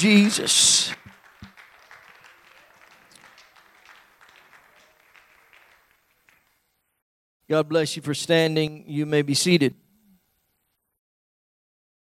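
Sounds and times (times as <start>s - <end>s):
speech: 0.0s - 1.0s, 7.5s - 9.8s
audience applauding: 0.0s - 6.6s.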